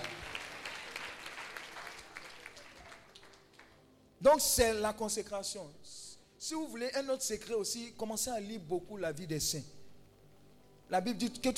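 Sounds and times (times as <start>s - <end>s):
congregation applauding during a French-language church service: 0.0s - 3.9s
speech: 4.2s - 9.8s, 10.9s - 11.5s.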